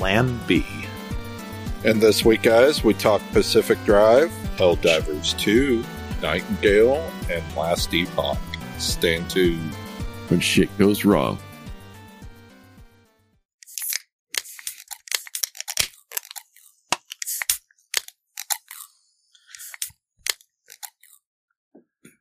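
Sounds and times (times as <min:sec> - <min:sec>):
speech: 0:00.0 - 0:00.8, 0:01.8 - 0:11.4
cans being opened: 0:13.6 - 0:18.9, 0:19.5 - 0:21.1.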